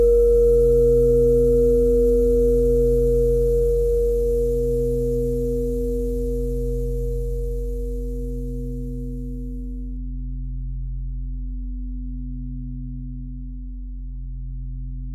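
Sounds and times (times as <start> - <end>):
bell: 0.0 - 9.8.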